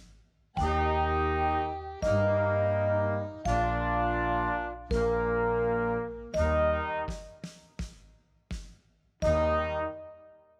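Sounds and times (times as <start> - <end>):
loud slow glockenspiel: 0.6 - 7.1, 9.2 - 10.0.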